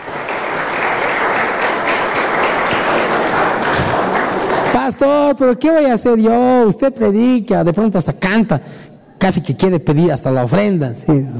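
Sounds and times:
audience applauding: 0.0 - 5.2
speech: 4.8 - 11.3.

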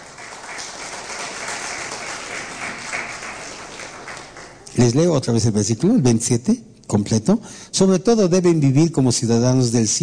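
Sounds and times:
applause: 0.0 - 5.0
speech: 4.8 - 10.0.

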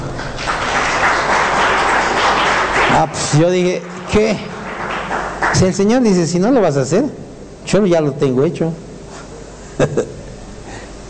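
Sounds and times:
applause: 0.0 - 6.4
speech: 3.0 - 4.5, 5.5 - 8.9, 9.8 - 10.2.

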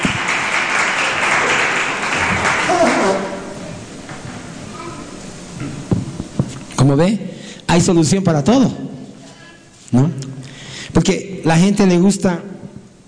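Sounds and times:
audience applause: 0.0 - 3.6
speech: 6.8 - 8.8, 9.9 - 10.3, 11.1 - 12.5.

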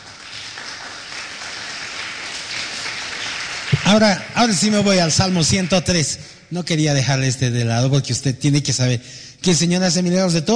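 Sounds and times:
audience applause: 0.0 - 5.9
speech: 3.9 - 10.5.

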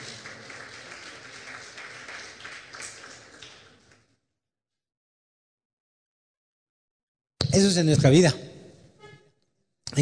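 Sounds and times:
church audience applause: 0.0 - 4.1
speech: 7.6 - 8.5.

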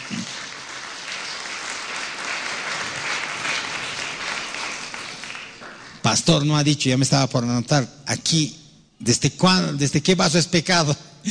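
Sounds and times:
audience applause: 0.0 - 6.0
speech: 6.1 - 11.2.

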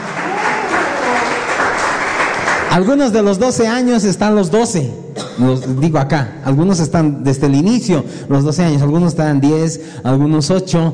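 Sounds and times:
church congregation applause for their ministry's 12th anniversary: 0.0 - 3.1
speech: 2.8 - 10.9.

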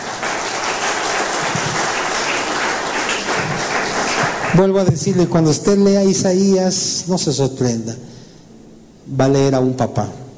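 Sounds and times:
audience applause: 0.0 - 4.9
speech: 4.5 - 8.1, 9.1 - 10.2.

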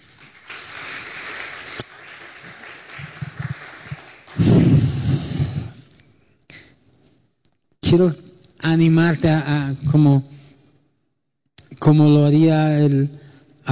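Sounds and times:
audience applause: 0.0 - 5.4
speech: 7.9 - 10.4, 11.8 - 13.7.

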